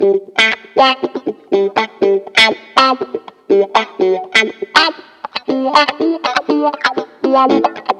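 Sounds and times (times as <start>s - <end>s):
disco music: 0.0s - 7.9s
wah-wah guitar: 0.0s - 7.9s.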